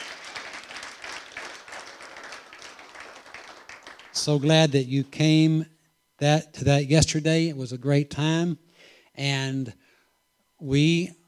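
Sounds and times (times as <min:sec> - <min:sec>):
church congregation applauding first-time guests during a service: 0:00.0 - 0:04.6
speech: 0:04.2 - 0:08.6, 0:09.2 - 0:09.8, 0:10.6 - 0:11.2.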